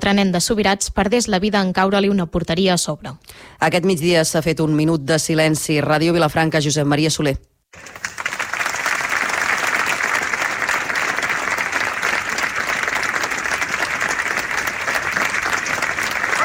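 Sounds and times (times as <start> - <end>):
speech: 0.0 - 8.0
applause: 7.7 - 16.4.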